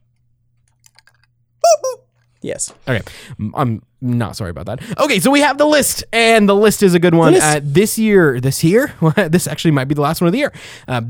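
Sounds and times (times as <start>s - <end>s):
rubber chicken squeak: 1.6s - 2.0s
speech: 2.4s - 11.0s.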